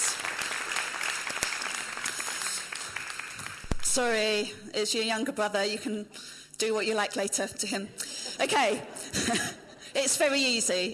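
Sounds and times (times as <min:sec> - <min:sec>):
audience applause: 0:00.0 - 0:04.1
speech: 0:03.9 - 0:10.9.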